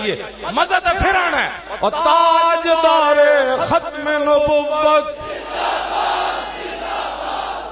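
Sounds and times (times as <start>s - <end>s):
speech: 0.0s - 6.1s
large crowd chanting religious slogans at a religious gathering: 5.2s - 7.7s.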